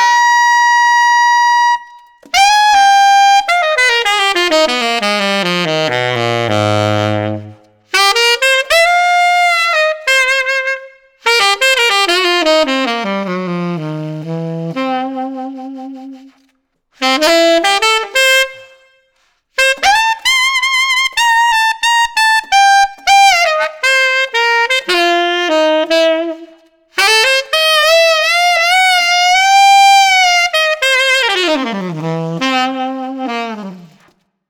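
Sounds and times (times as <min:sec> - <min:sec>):
tenor saxophone with reverb played with a metal mouthpiece: 0:00.0 - 0:34.2.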